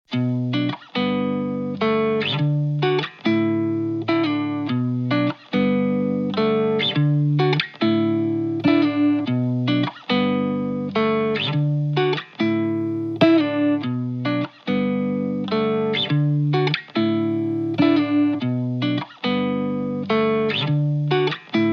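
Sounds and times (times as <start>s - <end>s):
alternative instrumental music: 0.1s - 21.7s.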